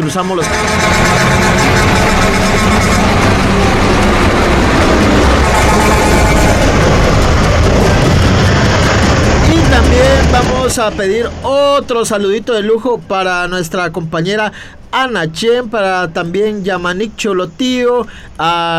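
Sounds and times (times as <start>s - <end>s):
horn blast sound effect: 0.0s - 11.5s
speech: 0.1s - 3.8s, 9.7s - 18.7s.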